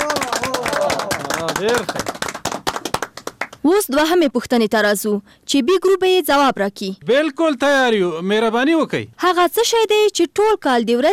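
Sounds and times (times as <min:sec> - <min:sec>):
audience clapping at a quiz contest after a correct answer: 0:00.0 - 0:03.7
speech: 0:01.6 - 0:02.3, 0:03.6 - 0:11.1.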